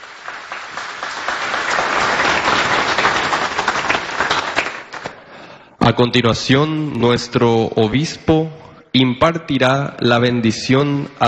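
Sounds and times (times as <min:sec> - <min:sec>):
audience applause: 0:00.0 - 0:05.2
speech: 0:05.9 - 0:11.2.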